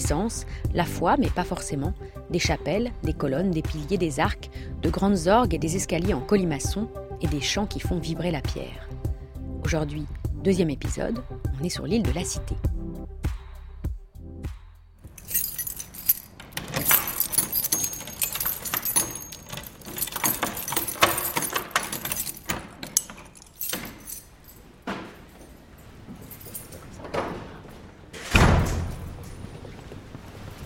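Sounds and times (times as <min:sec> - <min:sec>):
speech: 0:00.0 - 0:09.0, 0:09.6 - 0:12.7
bunch of keys jangling: 0:15.1 - 0:27.1
heavy doors being unlocked and pushed open on the Île de la Cité: 0:15.2 - 0:29.7.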